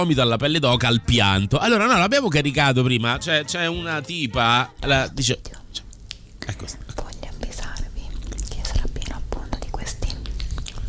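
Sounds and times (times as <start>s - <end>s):
speech: 0.0s - 5.6s, 6.4s - 7.0s
ASMR whispering: 5.4s - 10.2s
ASMR mouth clicks, lip smacks and tongue sounds: 5.5s - 10.8s.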